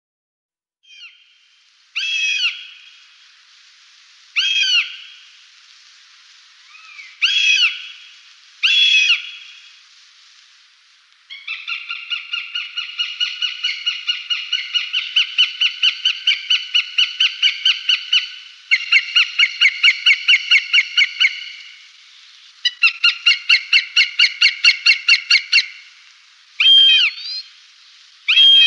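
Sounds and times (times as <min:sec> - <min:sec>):
northern goshawk wailing calls: 0:02.0 - 0:03.0, 0:04.4 - 0:05.3, 0:06.6 - 0:09.7, 0:11.3 - 0:21.8, 0:22.6 - 0:25.9, 0:26.6 - 0:27.5, 0:28.3 - 0:28.6.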